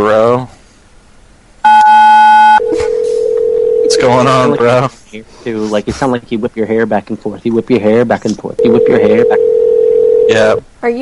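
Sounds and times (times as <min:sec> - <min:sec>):
speech: 0:00.0 - 0:00.5, 0:04.0 - 0:09.7, 0:10.3 - 0:11.0
telephone tone on a prank call: 0:01.7 - 0:04.8, 0:08.6 - 0:10.6.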